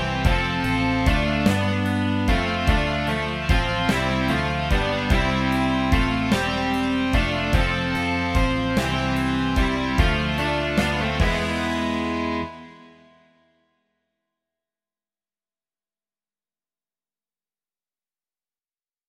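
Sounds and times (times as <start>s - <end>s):
rock music: 0.0s - 13.3s.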